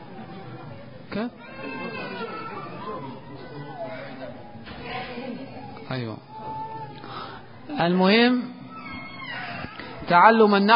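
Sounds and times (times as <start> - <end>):
children making noise: 0.0 - 10.1
speech: 1.2 - 6.6, 7.7 - 8.6, 10.1 - 10.7.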